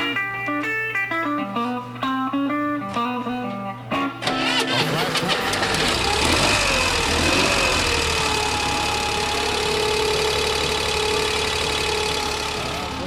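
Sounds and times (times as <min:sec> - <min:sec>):
stepped tonal notes: 0:00.0 - 0:13.0
modified Corvair car engine idling: 0:04.2 - 0:13.0.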